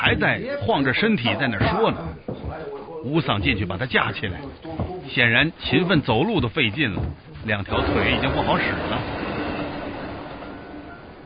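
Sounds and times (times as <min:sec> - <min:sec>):
speech: 0:00.1 - 0:02.3, 0:03.0 - 0:09.2
train passing beside a wet road: 0:07.7 - 0:11.2.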